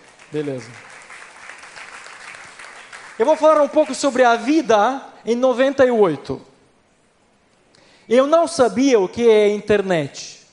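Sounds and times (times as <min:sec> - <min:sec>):
audience applause: 0:00.0 - 0:04.5
speech: 0:00.3 - 0:00.9, 0:03.2 - 0:06.5, 0:08.1 - 0:10.4.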